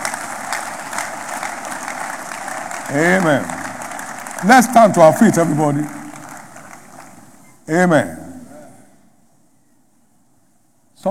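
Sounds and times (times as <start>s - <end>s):
audience applause: 0.0s - 7.5s
speech: 2.9s - 3.6s, 4.4s - 6.0s, 7.7s - 8.2s.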